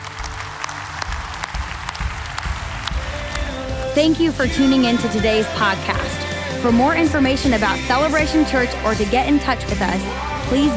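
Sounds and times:
audience clapping: 0:00.0 - 0:05.0
speech: 0:04.0 - 0:10.7.

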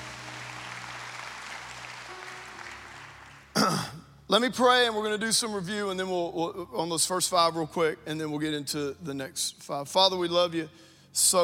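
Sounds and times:
congregation clapping at a church service: 0:00.0 - 0:04.0
speech: 0:03.6 - 0:11.4.

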